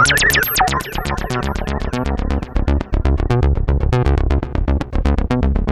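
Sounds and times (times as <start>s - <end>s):
Siel DK70 synthesizer filter test with external effects: 0.0s - 5.6s.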